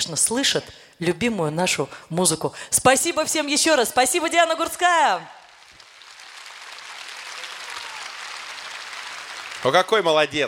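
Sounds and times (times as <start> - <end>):
speech: 0.0 - 5.4, 9.6 - 10.4
audience applause: 5.4 - 10.4.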